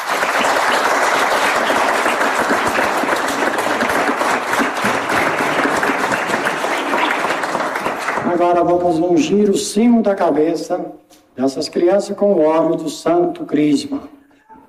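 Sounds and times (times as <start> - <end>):
audience applause: 0.0 - 8.7
speech: 8.4 - 14.6.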